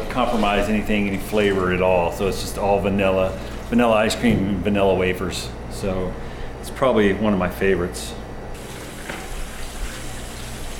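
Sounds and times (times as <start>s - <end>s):
speech: 0.2s - 8.2s
hot tap water running over an ice cream scooper: 8.6s - 10.7s.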